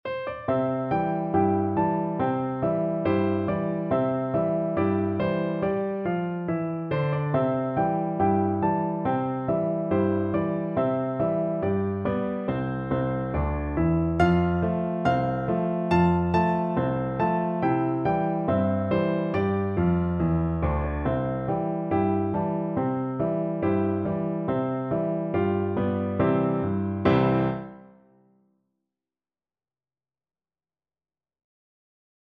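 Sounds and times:
piano duet: 0.0s - 28.3s.

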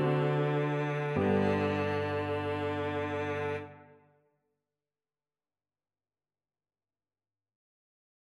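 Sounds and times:
violoncello: 0.0s - 4.0s.

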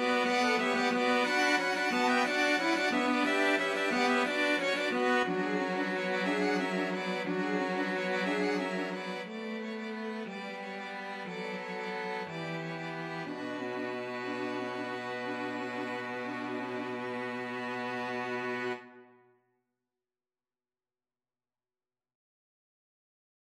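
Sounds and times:
flexible mixed ensemble of four players: 0.0s - 10.7s, 11.3s - 18.8s.

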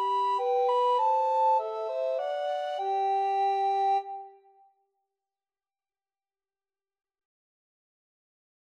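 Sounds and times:
recorder duet playing a carol: 0.0s - 4.3s.

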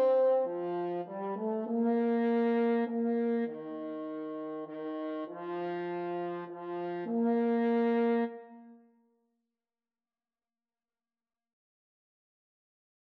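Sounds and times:
French horn in a duet: 0.0s - 8.8s
clarinet in a duet: 0.0s - 8.9s.

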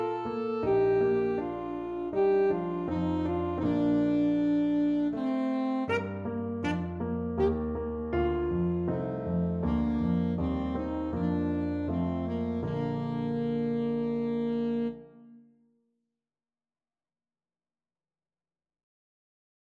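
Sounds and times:
dance alto saxophone: 0.0s - 15.5s.

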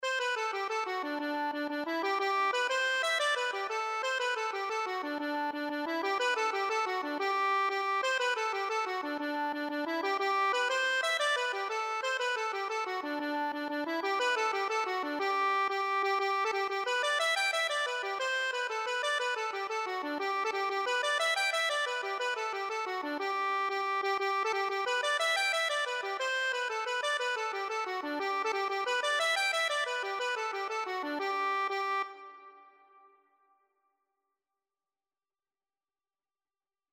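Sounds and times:
accordion: 0.0s - 33.0s.

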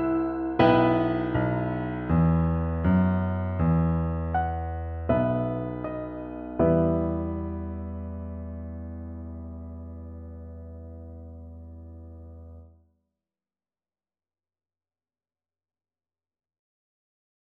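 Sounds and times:
piano duet: 0.0s - 12.7s.

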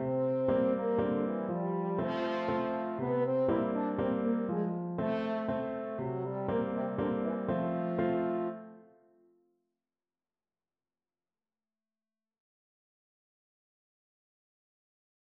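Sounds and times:
french horn playing waltzes: 0.0s - 8.8s.

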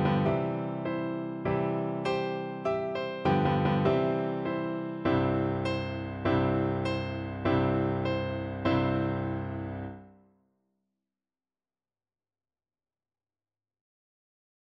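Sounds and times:
anthem played on piano: 0.0s - 10.1s.

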